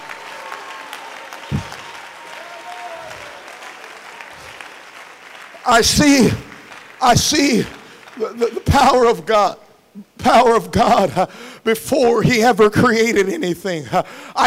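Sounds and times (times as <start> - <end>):
audience clapping hands: 0.0 - 9.2
speech: 5.7 - 9.6, 10.2 - 14.4.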